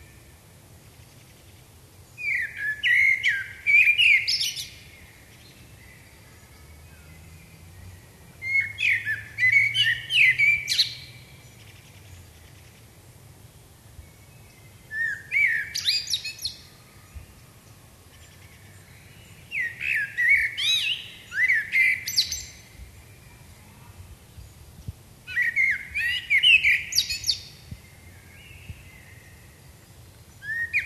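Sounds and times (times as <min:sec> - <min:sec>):
Common blackbird singing: 0:02.1 - 0:12.8, 0:14.1 - 0:24.5, 0:25.3 - 0:30.8.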